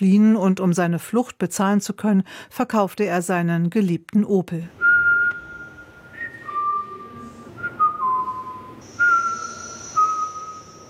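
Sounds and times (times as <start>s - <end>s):
speech: 0.0s - 4.9s
artist whistling a melody over loudspeakers: 4.8s - 10.8s.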